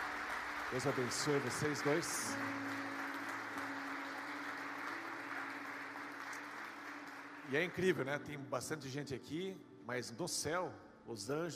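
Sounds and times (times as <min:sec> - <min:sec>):
audience applauding: 0:00.0 - 0:08.0
speech: 0:00.7 - 0:02.8, 0:07.5 - 0:11.5.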